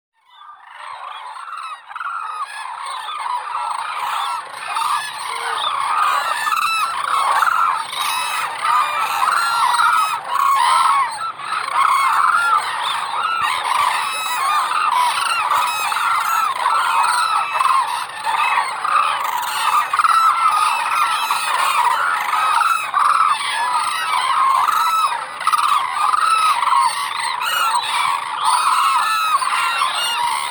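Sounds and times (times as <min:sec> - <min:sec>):
hooded crane Grus monacha calling: 0:00.3 - 0:30.4.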